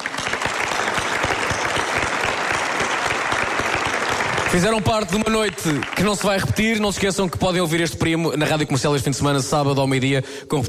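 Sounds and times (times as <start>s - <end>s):
audience applauding: 0.0s - 7.4s
speech: 4.5s - 10.6s.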